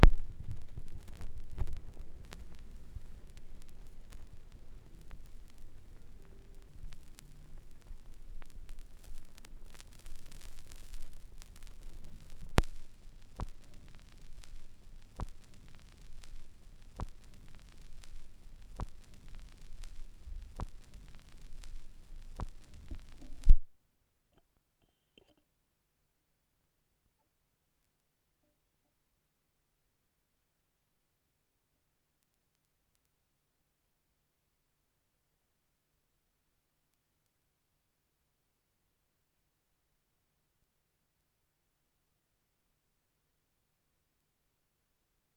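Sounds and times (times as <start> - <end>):
vinyl record noise: 0.0 - 23.7.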